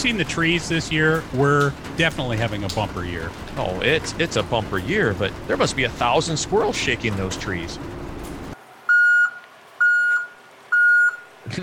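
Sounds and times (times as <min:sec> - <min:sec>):
speech: 0:00.0 - 0:08.0
bulldozer backup alarm beeping while driven off a trailer: 0:08.9 - 0:11.3.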